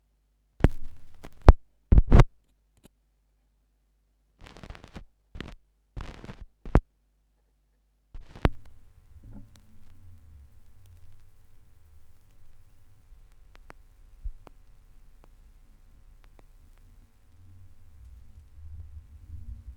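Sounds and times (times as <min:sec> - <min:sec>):
vinyl record noise: 0:00.6 - 0:02.3, 0:04.4 - 0:06.8, 0:08.2 - 0:19.7.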